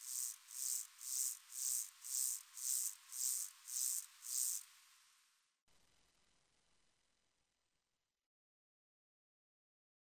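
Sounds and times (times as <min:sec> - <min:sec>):
bush cricket chirping: 0:00.0 - 0:04.7.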